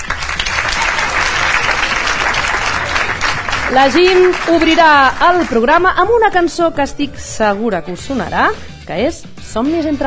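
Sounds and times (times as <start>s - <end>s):
audience applause: 0.0s - 5.8s
speech: 3.7s - 10.0s.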